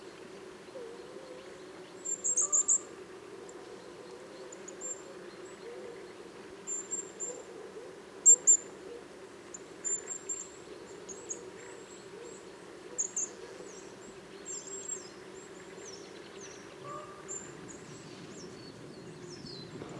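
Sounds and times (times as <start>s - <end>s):
many birds chirping on a sunny morning: 0.0s - 19.9s
aircraft noise: 19.7s - 19.9s.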